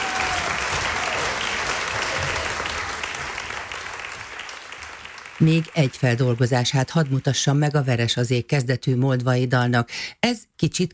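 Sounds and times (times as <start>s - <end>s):
audience applause: 0.0s - 7.6s
speech: 5.4s - 10.9s.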